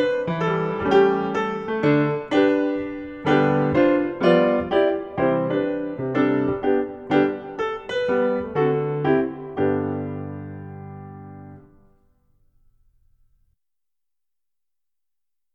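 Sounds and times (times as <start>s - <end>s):
reggae ballet class music at 120 BPM: 0.0s - 11.8s.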